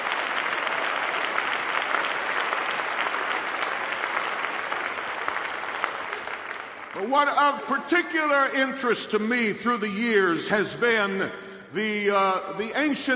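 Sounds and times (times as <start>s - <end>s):
audience hand clapping: 0.0s - 7.6s
speech: 7.0s - 13.1s.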